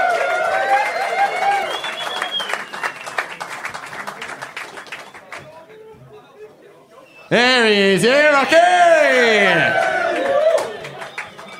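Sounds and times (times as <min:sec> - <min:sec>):
audience applause: 0:00.0 - 0:05.4, 0:07.9 - 0:11.5
speech: 0:07.3 - 0:09.8.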